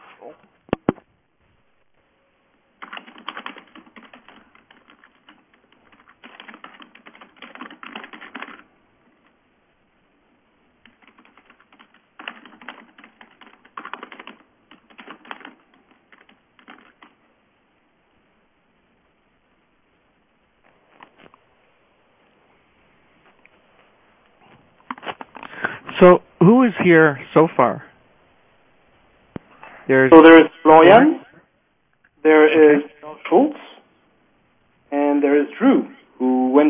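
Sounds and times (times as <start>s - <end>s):
speech: 0.2s - 0.6s, 26.0s - 27.8s, 29.9s - 31.2s, 32.2s - 33.6s, 35.2s - 35.9s
typing on a computer keyboard while replying to emails: 2.8s - 9.4s, 10.8s - 17.2s.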